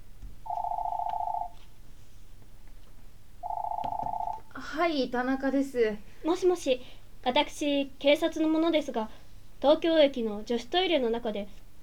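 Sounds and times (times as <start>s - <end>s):
home telephone ringing: 0.4s - 1.6s, 3.4s - 4.6s
speech: 4.7s - 11.8s.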